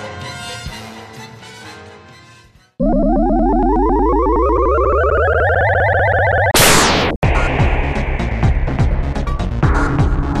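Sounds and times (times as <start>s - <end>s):
rising electronic whine: 2.8s - 9.6s
cartoonish explosion sound effect blast: 6.5s - 10.3s.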